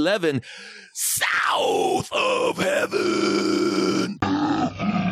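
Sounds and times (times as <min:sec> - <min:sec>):
speech: 0:00.0 - 0:05.0
man screaming: 0:01.0 - 0:04.8.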